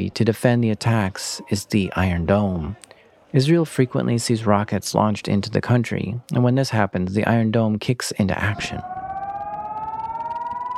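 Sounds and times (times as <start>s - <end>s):
speech: 0.0s - 9.0s
civil defense air raid siren: 8.5s - 10.7s.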